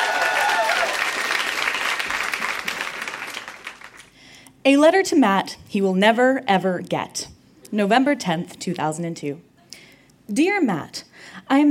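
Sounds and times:
audience applause welcoming a performer at a readings event in Toronto: 0.0s - 4.1s
speech: 4.7s - 9.5s, 10.3s - 11.6s.

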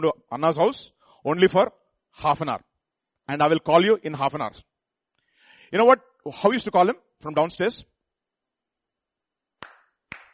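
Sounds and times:
speech: 0.0s - 2.7s, 3.3s - 4.7s, 5.7s - 7.9s
hand clap: 9.6s - 10.3s.

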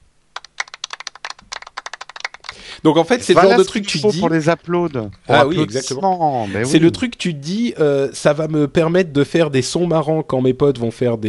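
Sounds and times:
golf applause sound effect: 0.4s - 4.3s
speech: 2.8s - 11.2s.

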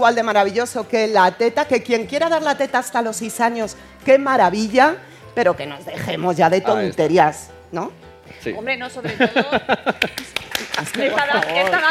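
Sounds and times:
speech: 0.0s - 11.8s
laughter: 9.0s - 11.8s
audience applause: 10.0s - 11.8s.

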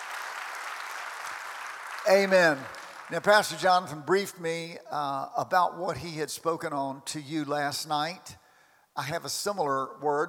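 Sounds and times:
audience clapping hands: 0.0s - 3.7s
speech: 2.0s - 8.4s, 9.0s - 10.2s.

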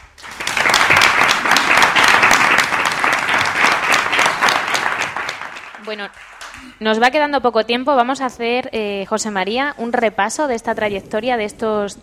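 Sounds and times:
audience applause: 0.0s - 6.8s
speech: 5.9s - 12.0s.

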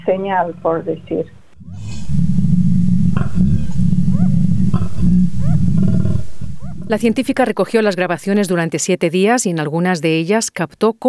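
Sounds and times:
speech: 0.0s - 1.9s, 6.9s - 11.0s
koala bellowing: 1.6s - 8.5s.

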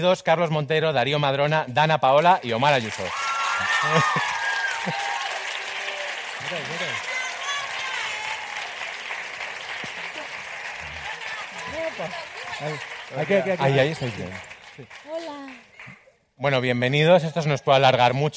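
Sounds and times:
speech: 0.0s - 5.1s, 6.4s - 7.1s, 12.0s - 15.6s, 16.4s - 18.3s
audience applauding and cheering: 2.4s - 16.1s.

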